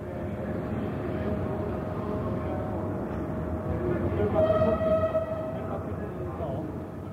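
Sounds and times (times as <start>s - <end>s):
indistinct voices: 0.0s - 7.1s
trains rumbling through Rome central railway station: 0.0s - 7.1s
brighter squealing horn-like sound: 4.3s - 5.8s.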